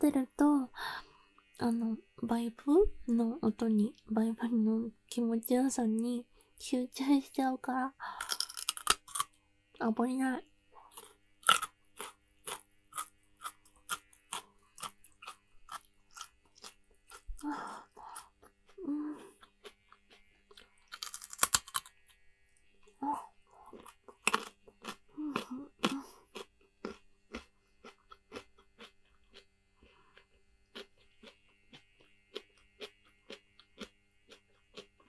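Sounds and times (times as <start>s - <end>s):
speech: 0.0s - 8.3s, 9.8s - 10.5s, 17.4s - 17.8s
crunchy chewing of food: 8.2s - 9.4s, 10.8s - 35.0s.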